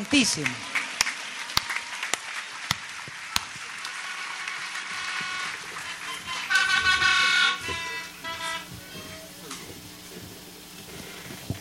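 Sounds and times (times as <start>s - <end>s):
crowd applause: 0.0s - 11.5s
horn blasts: 4.0s - 10.9s.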